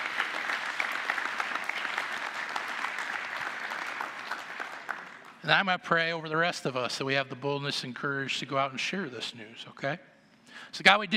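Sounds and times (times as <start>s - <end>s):
crowd audience clapping: 0.0s - 5.4s
speech: 5.4s - 11.1s.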